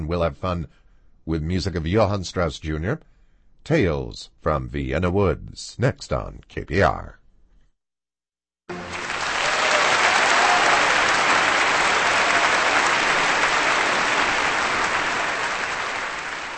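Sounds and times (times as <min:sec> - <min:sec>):
speech: 0:00.1 - 0:07.2
audience applause for an orchestra: 0:08.7 - 0:16.5.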